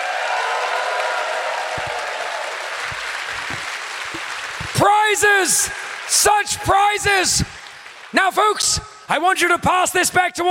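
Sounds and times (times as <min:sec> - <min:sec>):
hands clapping: 0:00.7 - 0:06.1
speech: 0:04.8 - 0:07.6, 0:08.2 - 0:10.4.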